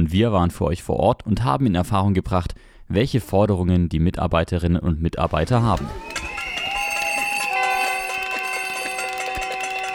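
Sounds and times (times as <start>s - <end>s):
speech: 0.1s - 6.1s
protesters' drums: 5.3s - 9.9s
protesters' whistles: 5.4s - 9.9s.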